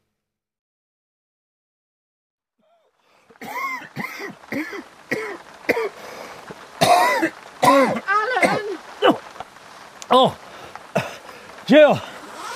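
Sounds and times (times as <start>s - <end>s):
chesty coughing: 3.4s - 6.0s, 6.8s - 9.2s, 10.9s - 11.3s
speech: 10.1s - 10.4s, 11.7s - 12.1s.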